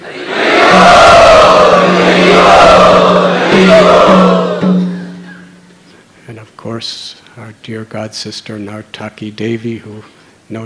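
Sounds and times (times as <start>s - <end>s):
congregation chanting in welcome: 0.0s - 5.2s
speech: 6.8s - 10.6s.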